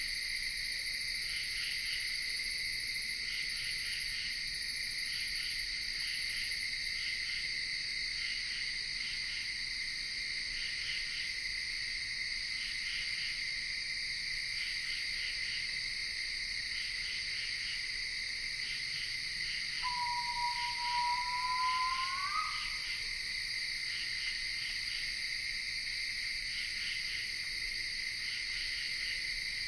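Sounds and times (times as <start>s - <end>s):
insects in Ithaca New York: 0.0s - 29.6s
screech owl calling in Ithaca New York: 19.8s - 23.0s.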